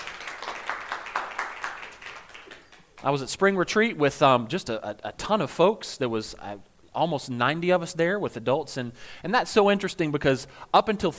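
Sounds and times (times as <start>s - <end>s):
small audience clapping: 0.0s - 3.2s
speech: 3.0s - 11.1s.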